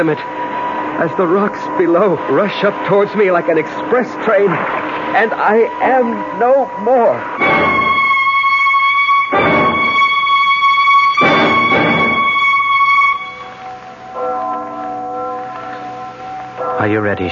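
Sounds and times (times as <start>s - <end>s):
speech: 0.0s - 0.4s, 1.0s - 7.8s, 16.8s - 17.3s
church bell tolling: 0.0s - 17.3s
softer lower chime: 13.1s - 17.3s.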